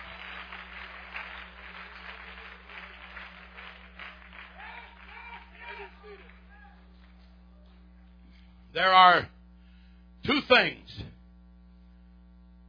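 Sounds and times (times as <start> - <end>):
audience clapping hands: 0.0 - 7.8
speech: 8.8 - 9.4, 10.3 - 11.2.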